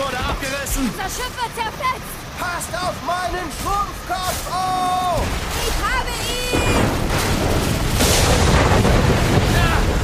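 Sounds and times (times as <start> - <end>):
speech: 0.7 - 7.8
thunderclap from a lightning strike: 3.6 - 10.0.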